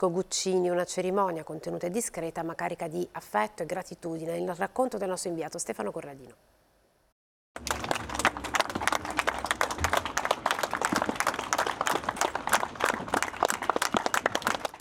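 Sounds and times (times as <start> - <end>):
speech: 0.0 - 6.5
long applause of villagers at a funeral: 7.6 - 14.7.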